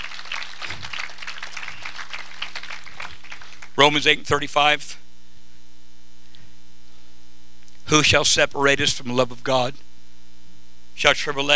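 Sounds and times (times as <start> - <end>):
audience clapping in praise: 0.0 - 4.2
low hum: 2.8 - 11.1
speech: 3.8 - 5.0, 7.9 - 9.8, 11.0 - 11.5.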